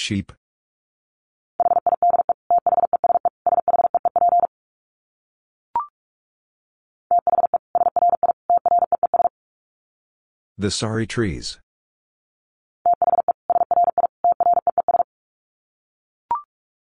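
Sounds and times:
speech: 0.0 - 0.4, 10.6 - 11.6
rapid Morse code beeps: 1.6 - 4.5, 7.1 - 9.3, 12.9 - 15.1.

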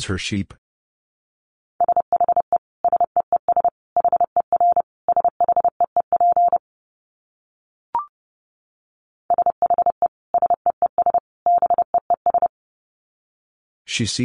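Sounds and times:
speech: 0.0 - 0.6, 14.0 - 14.2
Morse code beeps at 30 words per minute: 1.8 - 6.6, 9.3 - 12.5.

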